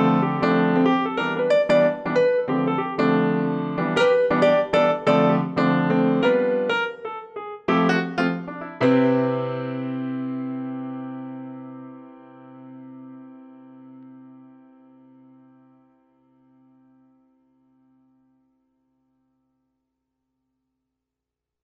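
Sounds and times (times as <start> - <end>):
cool jazz piano: 0.0 - 15.4.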